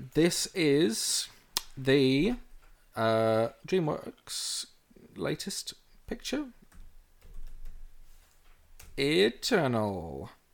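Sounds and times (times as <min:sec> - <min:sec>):
speech: 0:00.2 - 0:06.6, 0:09.0 - 0:10.4
typing on a computer keyboard: 0:06.7 - 0:07.8.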